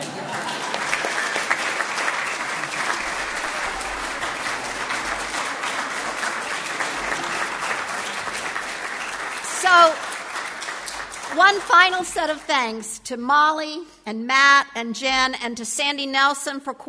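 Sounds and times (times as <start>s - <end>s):
audience clapping: 0.0s - 12.9s
speech: 11.4s - 16.8s.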